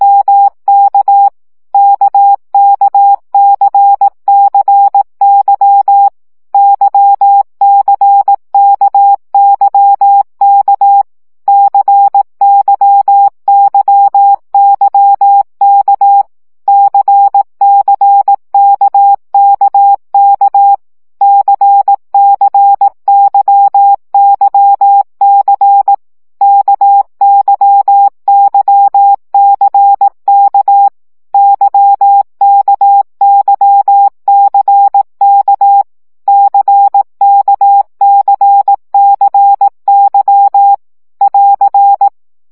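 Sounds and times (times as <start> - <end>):
morse code CW practice at 15 baud: 0.0 - 42.2.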